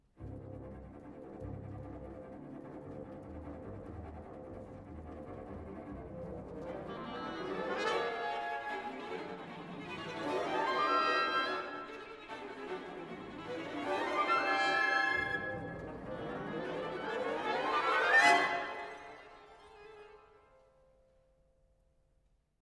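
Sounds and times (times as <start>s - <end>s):
orchestral toccata: 0.2s - 20.4s.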